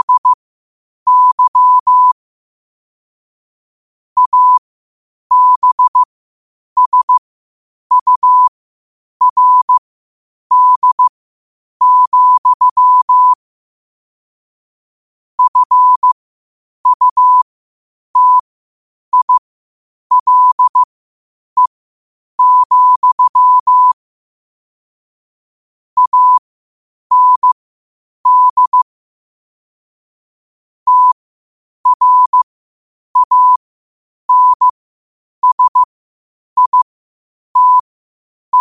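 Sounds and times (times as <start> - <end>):
morse code at 5 wpm: 0.0 - 0.4, 1.1 - 2.2, 4.2 - 4.6, 5.3 - 6.1, 6.8 - 7.2, 7.9 - 8.5, 9.2 - 9.8, 10.5 - 11.1, 11.8 - 13.4, 15.4 - 16.2, 16.8 - 17.4, 18.2 - 18.4, 19.1 - 19.4, 20.1 - 20.9, 22.4 - 24.0, 26.0 - 26.4, 27.1 - 27.6, 28.2 - 28.9, 30.9 - 31.2, 31.8 - 32.4, 33.2 - 33.6, 34.3 - 34.7, 35.4 - 35.9, 36.6 - 36.9, 37.6 - 37.9.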